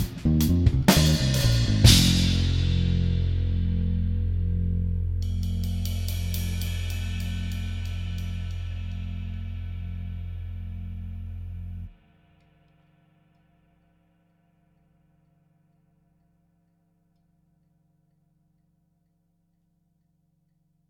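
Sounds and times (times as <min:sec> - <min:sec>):
backing track: 0:00.0 - 0:11.9.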